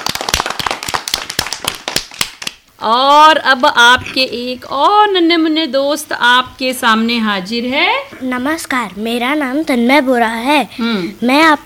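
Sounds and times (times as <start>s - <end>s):
enthusiastic applause: 0.0s - 2.6s
speech: 2.8s - 11.6s.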